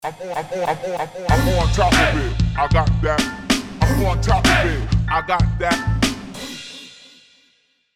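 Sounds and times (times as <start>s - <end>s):
aggressive bass drop: 1.3s - 3.2s, 3.8s - 6.0s.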